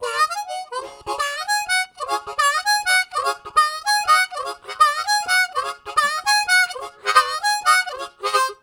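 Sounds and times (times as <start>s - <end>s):
harmonica riffs: 0.0s - 8.6s.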